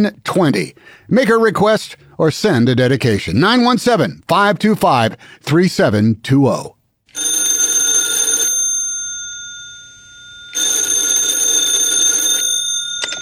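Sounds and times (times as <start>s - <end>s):
speech: 0.0s - 7.3s
telephone ringing on a radio request line: 7.1s - 13.1s.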